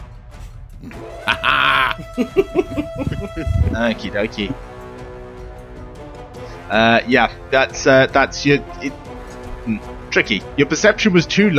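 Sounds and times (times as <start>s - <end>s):
stifled laughter: 0.8s - 4.0s
speech: 0.8s - 4.7s, 6.7s - 11.5s
voice imitating a creature's shriek: 0.9s - 2.3s.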